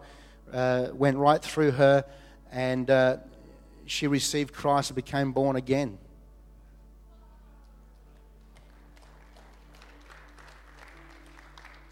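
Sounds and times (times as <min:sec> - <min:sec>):
speech: 0:00.5 - 0:03.3, 0:03.9 - 0:06.0
audience clapping: 0:08.1 - 0:11.8.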